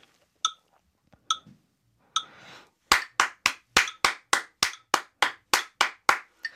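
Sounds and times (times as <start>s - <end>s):
hand clapping eighth-note triplets: 2.9s - 6.5s.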